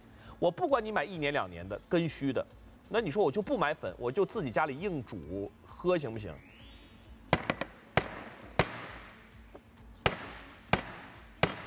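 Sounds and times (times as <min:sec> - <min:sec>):
speech: 0:00.4 - 0:06.8
something hard smashed down onto a tabletop: 0:07.3 - 0:09.0.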